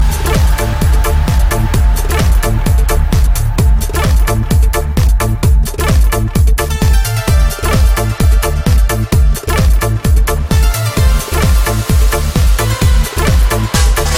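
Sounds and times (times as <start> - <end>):
oriental house music: 0.0 - 14.1.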